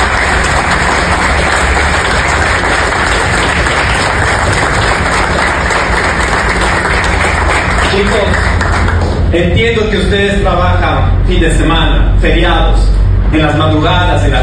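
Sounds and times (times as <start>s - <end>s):
audience applause: 0.0s - 9.3s
speech: 9.3s - 14.4s.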